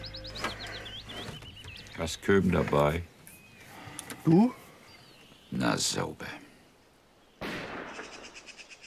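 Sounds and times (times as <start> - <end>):
speech: 2.0 - 3.1, 4.2 - 4.6, 5.5 - 6.4
gunshot: 7.4 - 8.4.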